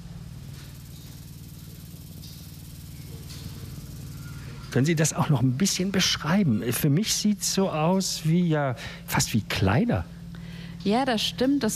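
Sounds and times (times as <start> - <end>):
hissy rattles: 0.0 - 8.3
continuously vibrating sculptures humming: 0.0 - 11.7
speech: 4.7 - 10.2, 10.8 - 11.7.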